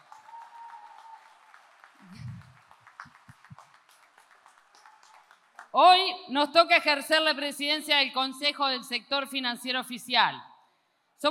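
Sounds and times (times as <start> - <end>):
audience applause: 0.0 - 5.8
speech: 5.8 - 10.5.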